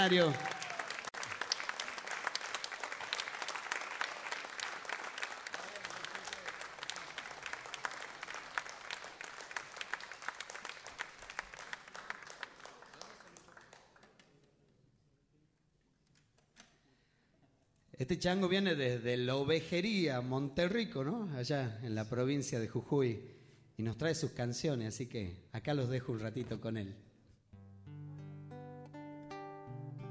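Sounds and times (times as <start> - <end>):
speech: 0.0 - 0.5, 18.0 - 27.1
audience applause: 0.0 - 14.3.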